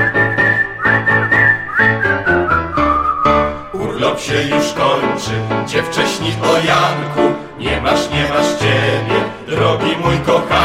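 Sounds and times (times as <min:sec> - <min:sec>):
person whistling a melody: 0:00.0 - 0:03.8
speech: 0:04.2 - 0:10.6.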